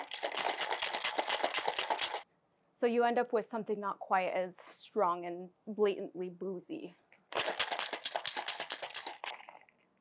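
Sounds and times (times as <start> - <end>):
cocktail shaker being shaken with ice: 0.0 - 2.2, 7.3 - 9.8
speech: 2.8 - 7.6.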